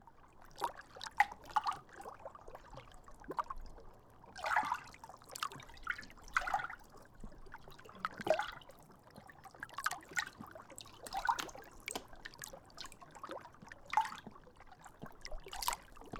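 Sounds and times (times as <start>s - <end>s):
water in the mountains: 0.0s - 16.1s.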